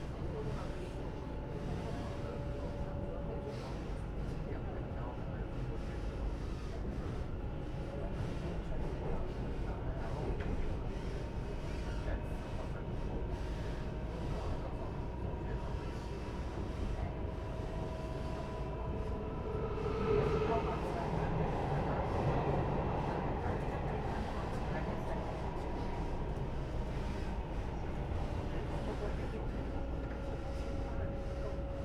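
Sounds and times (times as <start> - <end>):
voices: 0.0 - 31.8
faint tonal whines: 14.1 - 31.8
local express train wheels and motors rumbling between Nangang and Qidu: 16.5 - 31.8.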